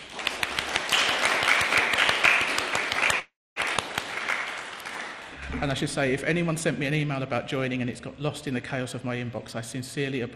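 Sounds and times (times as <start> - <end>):
applause for new members: 0.0 - 6.0
speech: 5.6 - 10.3.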